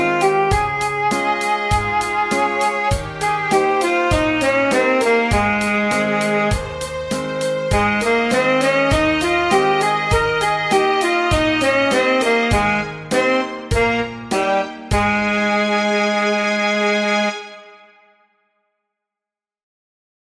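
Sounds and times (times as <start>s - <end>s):
saxophone playing an F scale in quarter notes: 0.0s - 18.1s.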